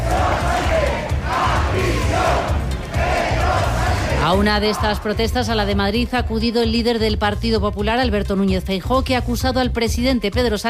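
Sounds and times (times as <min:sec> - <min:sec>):
protest crowd shouting against government: 0:00.0 - 0:05.8
speech: 0:04.3 - 0:10.6.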